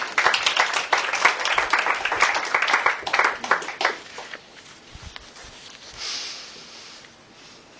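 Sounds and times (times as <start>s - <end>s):
audience applause: 0.0s - 4.4s.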